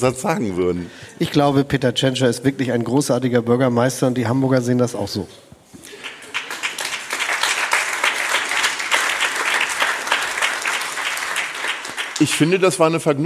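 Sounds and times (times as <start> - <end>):
speech: 0.0 - 5.5, 12.2 - 13.2
large audience applause: 5.9 - 12.8.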